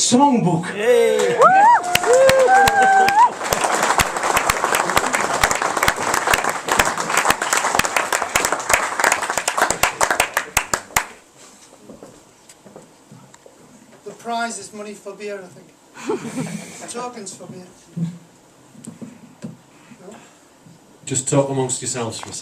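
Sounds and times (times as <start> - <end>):
speech: 0.0 - 3.0, 14.9 - 18.1, 21.1 - 22.4
audience clapping to welcome an act: 1.2 - 11.2.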